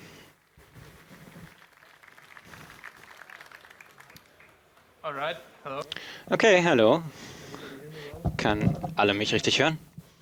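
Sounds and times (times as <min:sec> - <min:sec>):
audience applause: 0:01.4 - 0:05.0
speech: 0:05.0 - 0:07.3, 0:08.3 - 0:09.9.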